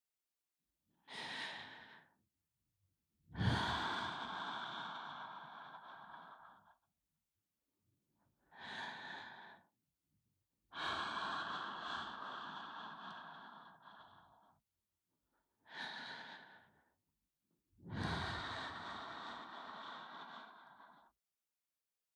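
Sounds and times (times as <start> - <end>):
binaural ASMR breathing in the right ear: 1.0 - 2.2, 3.4 - 6.9, 8.4 - 9.8, 10.7 - 14.7, 15.6 - 17.0, 17.8 - 21.2.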